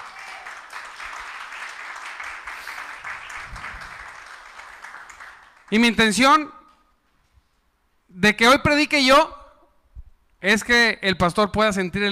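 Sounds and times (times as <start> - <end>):
audience applause: 0.0 - 5.8
speech: 5.7 - 6.6, 8.2 - 9.4, 10.4 - 12.1.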